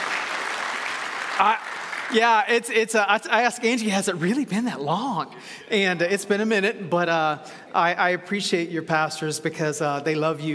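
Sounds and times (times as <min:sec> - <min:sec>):
congregation applauding the church's pastors: 0:00.0 - 0:02.7
speech: 0:01.4 - 0:10.5.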